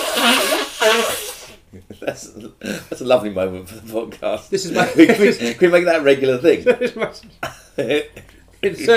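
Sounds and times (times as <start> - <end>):
person blowing nose: 0.0 - 1.6
speech: 2.1 - 8.9.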